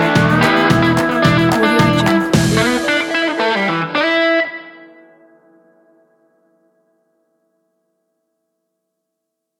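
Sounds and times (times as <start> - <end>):
rocking country music: 0.0 - 5.1.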